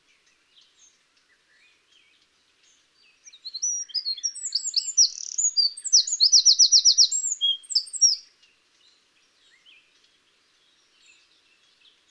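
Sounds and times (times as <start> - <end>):
Eurasian wren singing: 3.3 - 8.2.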